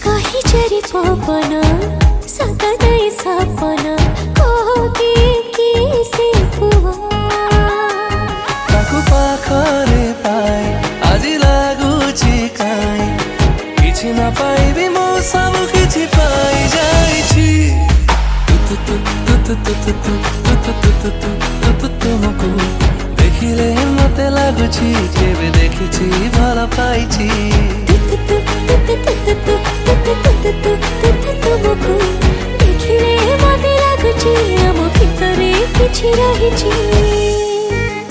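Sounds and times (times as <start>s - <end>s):
Odia romantic song: 0.0s - 38.0s.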